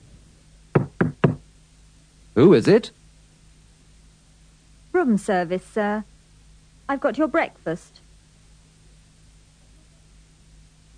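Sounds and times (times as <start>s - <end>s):
knocks on a hotel room door: 0.7s - 1.4s
speech: 2.4s - 3.0s, 5.0s - 6.1s, 6.9s - 8.0s.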